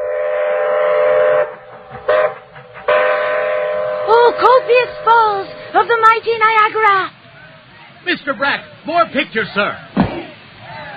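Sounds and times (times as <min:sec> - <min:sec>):
train whistle blowing: 0:00.0 - 0:06.1
train rumbling: 0:00.0 - 0:10.9
speech: 0:08.2 - 0:09.9.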